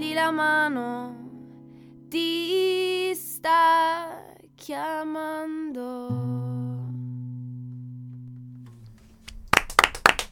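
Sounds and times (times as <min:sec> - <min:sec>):
speech: 0:00.2 - 0:01.3, 0:02.1 - 0:06.6
applause: 0:09.3 - 0:10.2.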